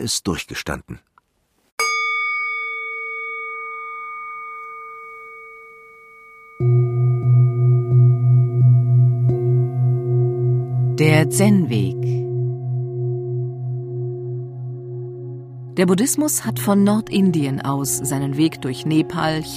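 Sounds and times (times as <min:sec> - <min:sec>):
speech: 0:00.0 - 0:01.1, 0:11.0 - 0:12.2, 0:15.8 - 0:19.5
fine bell tone ending a meditation: 0:01.8 - 0:19.5.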